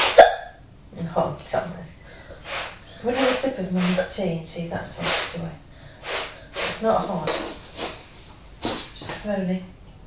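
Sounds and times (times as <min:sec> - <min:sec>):
child hiccup: 0:00.1 - 0:00.6
speech: 0:01.2 - 0:02.0, 0:03.0 - 0:05.7, 0:06.8 - 0:07.5, 0:09.2 - 0:09.7.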